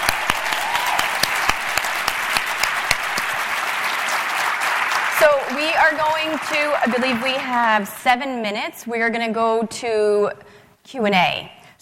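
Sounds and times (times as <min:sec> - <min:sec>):
audience applause: 0:00.0 - 0:08.0
speech: 0:05.2 - 0:11.8.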